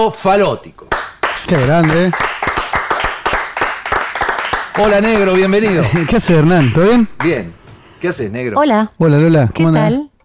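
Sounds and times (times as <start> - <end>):
speech: 0.0 - 0.9, 1.5 - 2.4, 4.8 - 10.1
audience applause: 0.9 - 7.6
laughter: 4.9 - 7.5.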